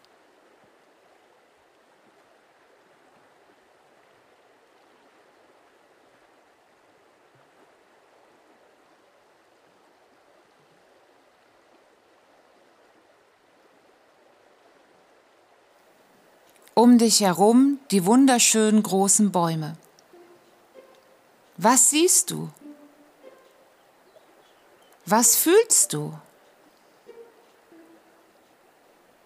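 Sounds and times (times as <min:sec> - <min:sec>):
flowing river water: 0:00.0 - 0:29.2
speech: 0:16.8 - 0:19.9, 0:21.6 - 0:22.6, 0:25.1 - 0:26.3.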